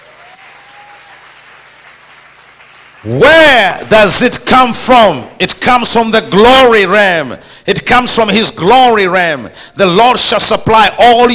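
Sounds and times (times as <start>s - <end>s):
audience clapping: 0.0s - 3.9s
speech: 3.0s - 11.3s.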